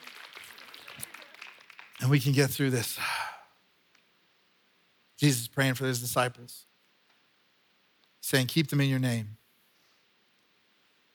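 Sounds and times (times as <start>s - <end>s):
audience clapping: 0.0s - 3.0s
speech: 2.1s - 3.2s, 5.2s - 6.7s, 8.3s - 9.4s.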